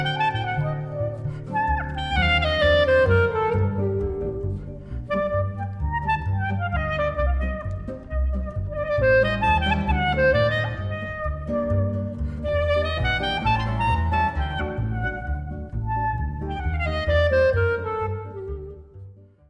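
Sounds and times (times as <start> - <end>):
klezmer clarinet melody: 0.0 - 19.4.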